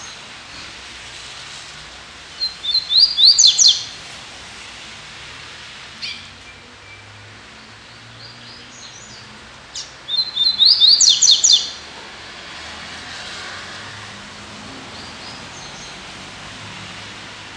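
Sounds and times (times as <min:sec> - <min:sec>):
Double-collared Seedeater singing: 0:02.4 - 0:04.0, 0:06.0 - 0:11.8.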